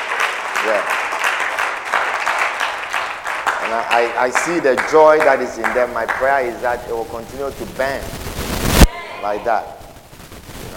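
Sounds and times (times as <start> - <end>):
crowd clapping: 0.0 - 7.0
speech: 0.6 - 1.1, 3.7 - 8.2, 9.2 - 9.8.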